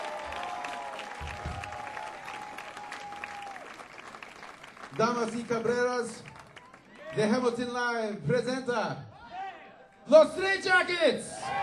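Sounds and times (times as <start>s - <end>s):
audience applause: 0.0s - 7.6s
speech: 4.9s - 6.3s, 7.1s - 9.1s, 10.1s - 11.4s.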